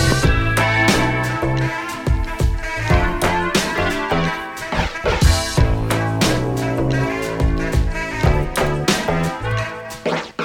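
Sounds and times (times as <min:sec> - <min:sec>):
gimbri playing: 0:00.2 - 0:10.3.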